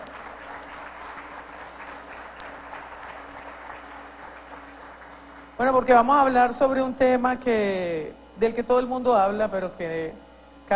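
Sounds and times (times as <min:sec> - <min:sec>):
audience applause: 0:00.0 - 0:05.6
speech: 0:05.6 - 0:10.7.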